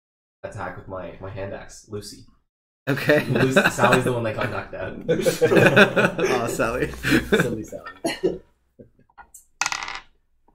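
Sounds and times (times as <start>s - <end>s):
speech: 0.4s - 8.4s
laughter: 2.9s - 8.5s
dice rolled across a hard surface: 9.6s - 10.1s.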